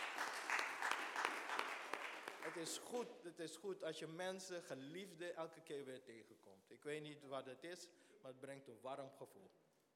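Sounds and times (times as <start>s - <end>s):
audience applause: 0.0s - 2.8s
speech: 2.5s - 9.6s.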